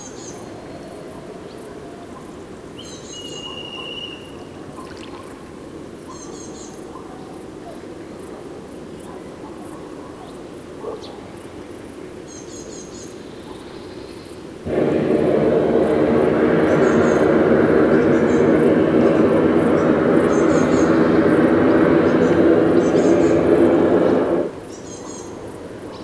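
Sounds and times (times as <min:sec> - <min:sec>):
Black Kite Milvus migrans thin whistled calls: 0:14.7 - 0:24.5.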